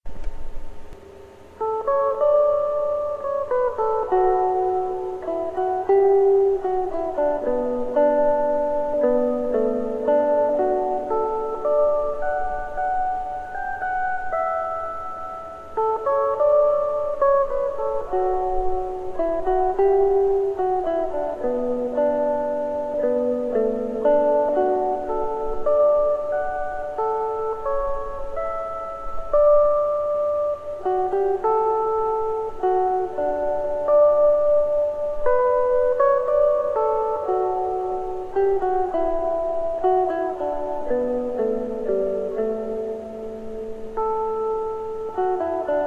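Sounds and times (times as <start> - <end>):
mandolin: 0.1 - 45.8.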